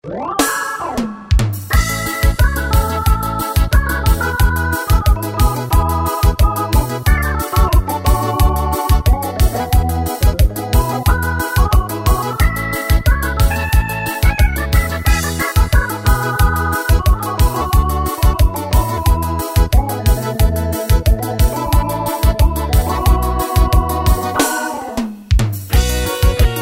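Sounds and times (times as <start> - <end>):
Korg Pa keyboard rhythms: 0.0 - 26.6.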